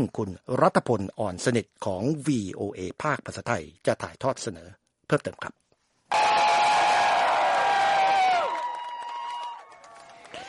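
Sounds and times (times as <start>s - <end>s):
speech: 0.0s - 6.5s
crowd cheering outside the court: 6.1s - 10.4s.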